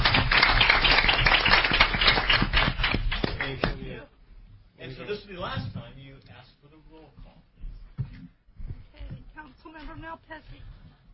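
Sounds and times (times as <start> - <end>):
audience applause for council clerk: 0.0 - 3.7
speech: 10.0 - 10.8.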